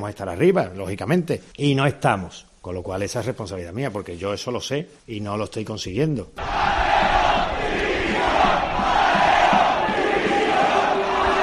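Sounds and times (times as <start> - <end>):
speech: 0.0 - 7.2
Salamanca football fans booing coach in the stadium: 6.4 - 11.4.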